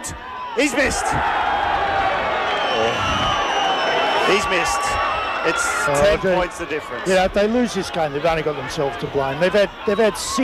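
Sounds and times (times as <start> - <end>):
stadium crowd roar: 0.0 - 10.4
speech: 0.1 - 1.5, 4.3 - 10.4
football supporters whistling loudly: 2.3 - 6.2, 9.7 - 10.4.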